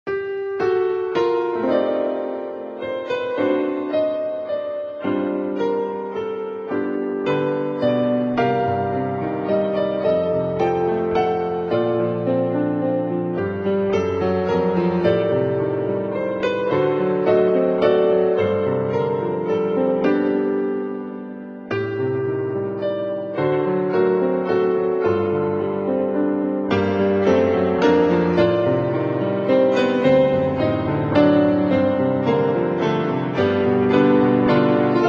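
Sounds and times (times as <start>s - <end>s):
piano waltz: 0.1s - 35.0s.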